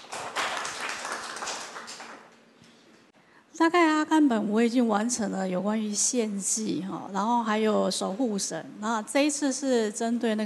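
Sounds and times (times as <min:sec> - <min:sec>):
audience applause: 0:00.0 - 0:02.3
speech: 0:03.6 - 0:10.4.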